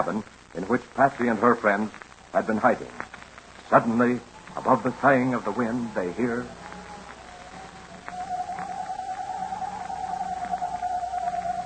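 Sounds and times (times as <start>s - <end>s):
speech: 0.0s - 3.1s, 3.7s - 6.6s
hoot owl screech: 4.4s - 11.6s.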